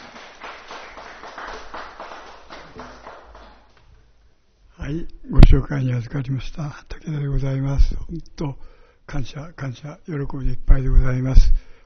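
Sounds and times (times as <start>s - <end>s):
audience applause: 0.0s - 3.9s
speech: 4.9s - 11.6s.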